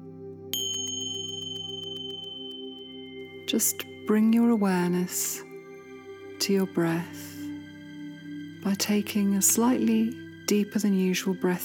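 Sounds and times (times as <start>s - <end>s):
meditation bell ringing: 0.6s - 8.3s
speech: 3.5s - 5.5s, 6.4s - 7.4s, 8.6s - 11.6s.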